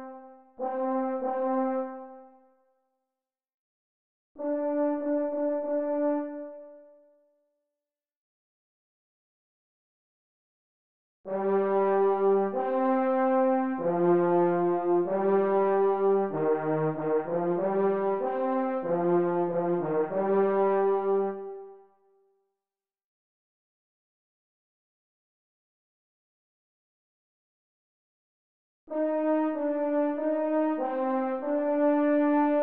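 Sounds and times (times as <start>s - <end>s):
F horn: 0.0s - 2.4s, 4.4s - 7.0s, 11.3s - 21.9s, 28.9s - 32.6s.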